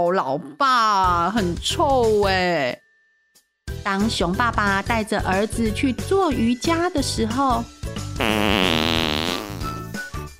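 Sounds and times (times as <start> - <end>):
speech: 0.0 - 2.8, 3.8 - 8.8
loud fart: 8.2 - 9.8.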